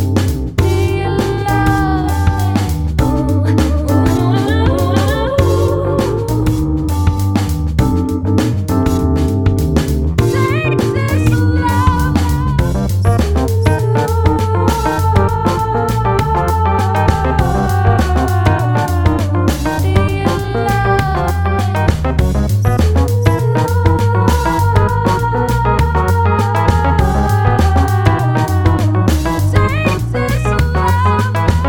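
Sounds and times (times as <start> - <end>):
beat: 0.0 - 31.6.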